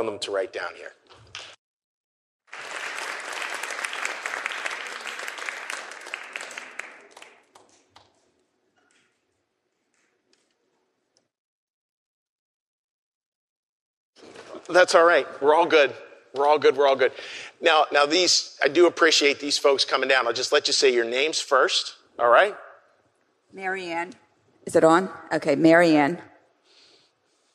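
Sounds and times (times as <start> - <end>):
speech: 0.0 - 1.5, 14.7 - 22.6, 23.5 - 26.3
audience applause: 2.5 - 7.8.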